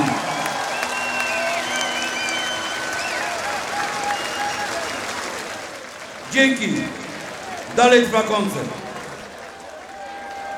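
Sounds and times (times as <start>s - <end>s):
scattered whistles and cheers: 0.0s - 6.2s, 8.8s - 10.5s
crowd applauding: 0.0s - 10.5s
speech: 6.3s - 7.0s, 7.8s - 8.8s.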